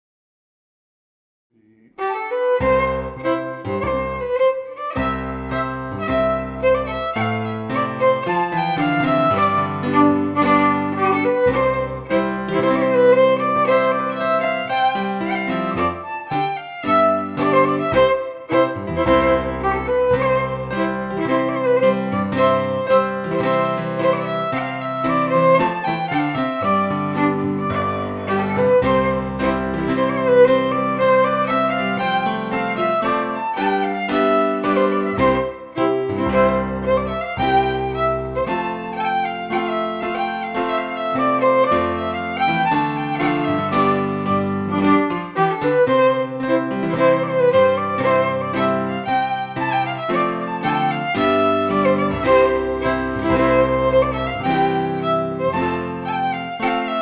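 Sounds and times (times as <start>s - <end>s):
Scottish fiddle playing a march: 1.7s - 57.0s.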